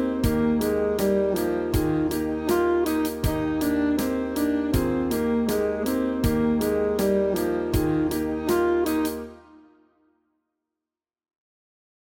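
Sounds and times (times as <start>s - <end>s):
saxophone study: 0.0s - 9.8s.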